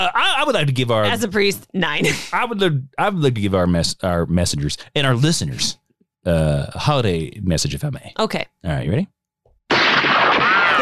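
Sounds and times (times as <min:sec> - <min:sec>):
speech: 0:00.0 - 0:09.2
1886 Winchester rifle gunshot: 0:09.7 - 0:10.8.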